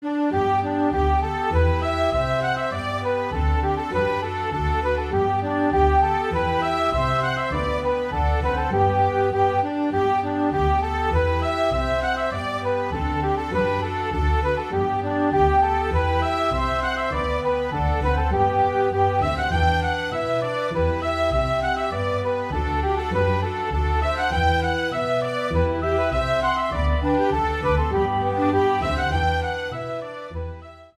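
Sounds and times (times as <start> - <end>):
Irish polka music: 0.0 - 30.9.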